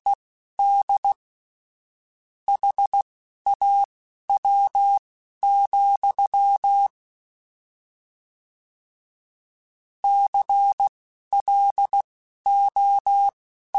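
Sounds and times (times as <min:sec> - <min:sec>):
Morse code beeps: 0:00.6 - 0:01.2, 0:02.5 - 0:06.9, 0:10.0 - 0:13.7.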